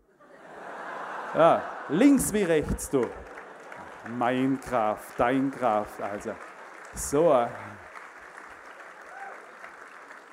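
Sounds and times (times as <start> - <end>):
laughter: 0.2 - 6.3
audience clapping: 0.6 - 10.3
speech: 1.3 - 3.3, 4.0 - 7.8.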